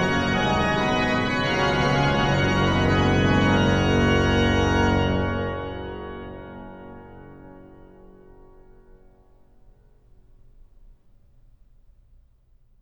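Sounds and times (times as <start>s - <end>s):
organ: 0.0s - 8.0s.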